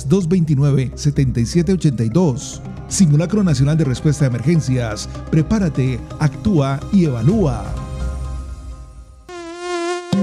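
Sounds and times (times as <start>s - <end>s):
speech: 0.0s - 7.8s
mosquitoes buzzing: 9.3s - 10.2s.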